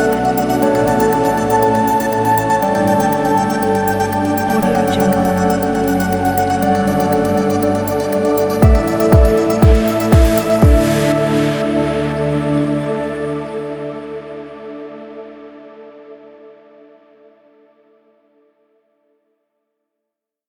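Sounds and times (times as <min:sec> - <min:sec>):
dreamy dance music: 0:00.0 - 0:14.2.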